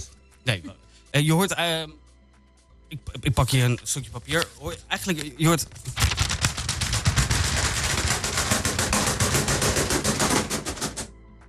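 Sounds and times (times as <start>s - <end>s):
speech: 0.0s - 2.0s, 2.9s - 6.1s
pigeon wings flapping: 5.8s - 11.1s.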